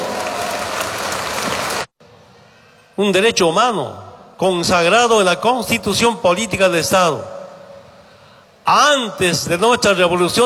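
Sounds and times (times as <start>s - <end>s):
audience applause: 0.0s - 1.9s
speech: 3.0s - 7.4s, 8.7s - 10.4s.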